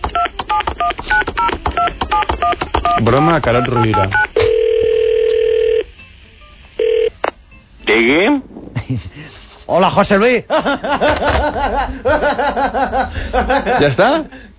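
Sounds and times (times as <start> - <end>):
touch-tone keypad beeps dialing a number for a prank phone call: 0.1 - 5.8
long steady telephone tone: 0.2 - 5.9, 6.8 - 7.2
speech: 3.0 - 4.3, 7.9 - 9.1, 9.7 - 14.4
laughter: 8.7 - 9.6, 10.5 - 14.4.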